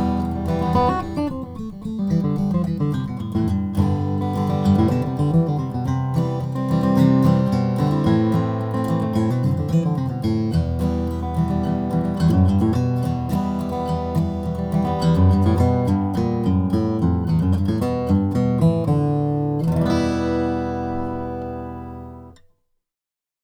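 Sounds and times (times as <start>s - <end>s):
Goodall jumbo cutaway acoustic guitar with spruce top: 0.0s - 22.5s.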